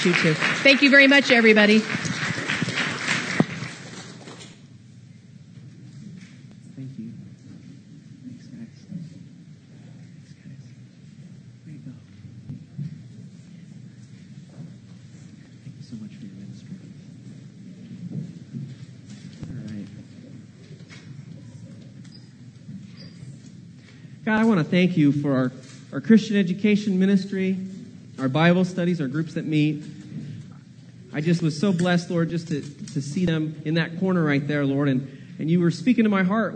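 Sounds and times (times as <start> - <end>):
speech: 0.0 - 2.1, 24.7 - 30.0, 31.1 - 36.5
audience applause: 0.0 - 4.5.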